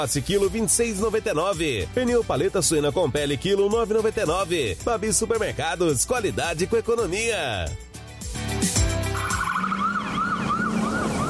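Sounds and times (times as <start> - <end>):
speech: 0.0 - 7.9
ambulance siren on a pothole-filled road in Mato Grosso: 9.0 - 11.2.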